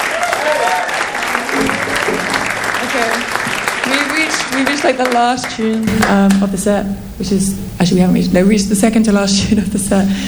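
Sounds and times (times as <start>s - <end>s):
audience applause: 0.0s - 6.4s
speech: 4.6s - 10.2s.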